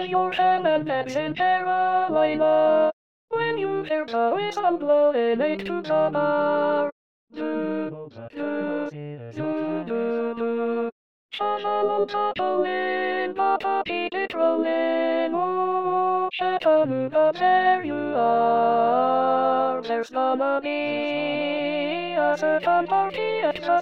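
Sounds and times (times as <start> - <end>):
alto voice singing in SATB choir part: 0.0 - 23.7.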